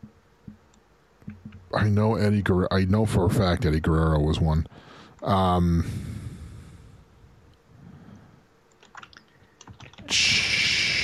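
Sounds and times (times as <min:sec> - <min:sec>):
speech: 0:01.7 - 0:06.1
quiet typing on a computer keyboard: 0:08.7 - 0:10.1.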